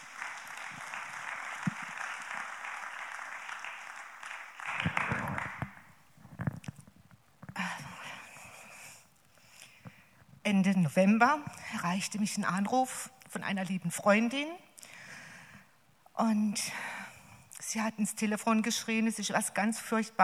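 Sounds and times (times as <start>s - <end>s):
audience applause: 0.0s - 5.9s
speech: 10.5s - 14.6s, 16.2s - 16.8s, 17.7s - 20.2s.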